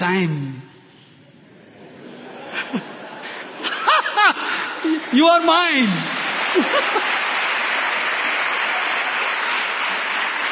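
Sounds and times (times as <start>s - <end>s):
speech: 0.0s - 0.6s, 5.1s - 7.1s
laughter: 1.6s - 5.2s, 6.2s - 7.4s
audience clapping: 4.4s - 10.4s.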